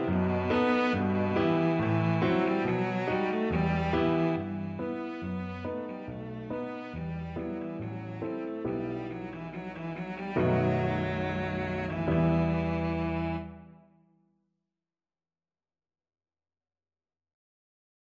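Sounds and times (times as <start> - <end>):
cello playing a gavotte: 0.0 - 13.8.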